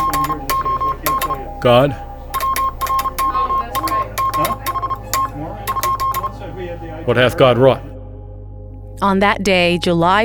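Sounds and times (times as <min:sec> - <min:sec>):
Morse code telegraph message: 0:00.0 - 0:07.9
speech: 0:01.6 - 0:02.1, 0:07.1 - 0:07.9, 0:09.0 - 0:10.2.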